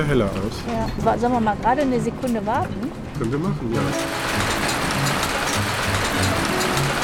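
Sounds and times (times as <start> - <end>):
speech: 0.0 - 4.4
hail falling: 3.8 - 7.0.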